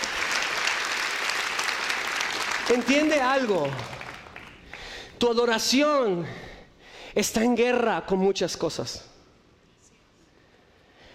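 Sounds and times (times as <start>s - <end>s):
church congregation applause for God during a worship service: 0.0s - 5.1s
speech: 2.7s - 4.0s, 5.2s - 6.5s, 7.1s - 9.1s.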